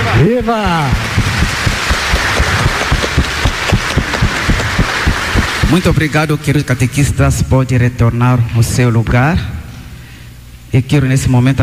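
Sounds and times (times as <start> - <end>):
crowd clapping for the catechists: 0.0 - 6.3
speech: 0.2 - 1.1, 5.7 - 9.5, 10.7 - 11.6.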